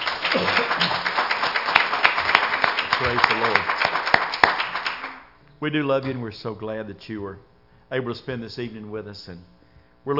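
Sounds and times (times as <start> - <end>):
audience applause: 0.0 - 5.3
speech: 3.0 - 3.8, 5.6 - 10.1.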